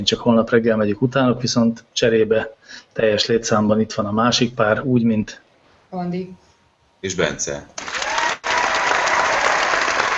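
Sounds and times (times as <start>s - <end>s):
speech: 0.0s - 6.4s, 7.0s - 7.9s
applause sound effect: 7.8s - 10.1s.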